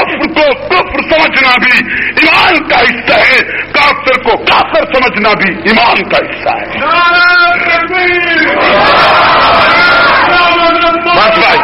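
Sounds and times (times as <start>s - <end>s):
laughter: 0.0s - 4.2s, 7.6s - 10.4s
speech: 0.5s - 9.7s
crowd cheering and yelling: 8.3s - 11.6s.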